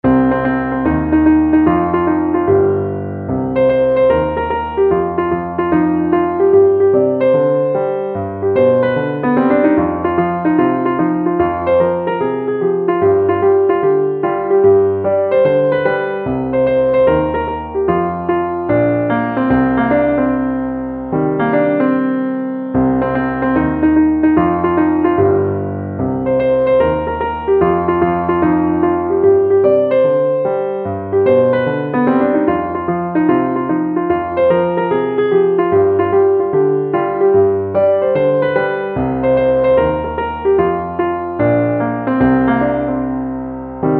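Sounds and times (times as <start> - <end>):
piano: 0.0 - 43.9.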